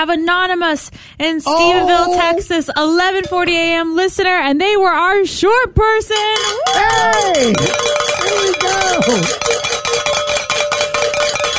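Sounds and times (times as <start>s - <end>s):
speech: 0.0s - 9.6s
vocal whoop: 1.5s - 2.4s, 6.6s - 7.7s, 8.8s - 9.3s
bells ringing: 6.4s - 11.5s.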